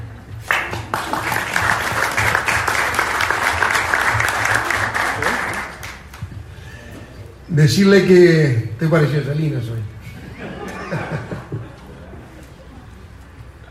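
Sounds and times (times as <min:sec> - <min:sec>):
room full of people applauding: 0:00.4 - 0:06.2
laughter: 0:01.0 - 0:05.8, 0:10.0 - 0:13.1
speech: 0:07.6 - 0:10.0.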